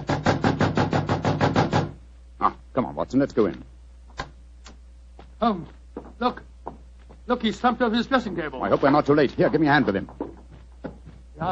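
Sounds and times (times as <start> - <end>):
knocking on a dressing room door: 0.0 - 2.0, 6.0 - 6.9, 9.4 - 11.2
speech: 2.8 - 3.7, 5.4 - 6.5, 7.3 - 10.2.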